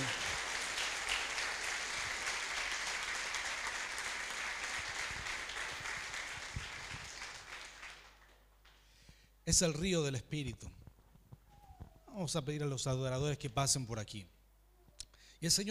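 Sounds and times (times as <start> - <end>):
audience applause: 0.0 - 8.4
speech: 9.5 - 10.8, 12.2 - 14.4, 15.4 - 15.7.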